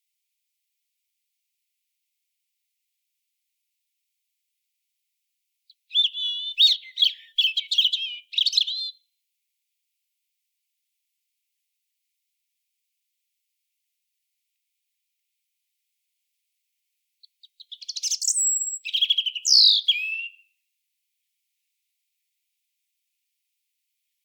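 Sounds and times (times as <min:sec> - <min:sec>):
European robin singing: 0:05.7 - 0:09.0, 0:17.2 - 0:20.5.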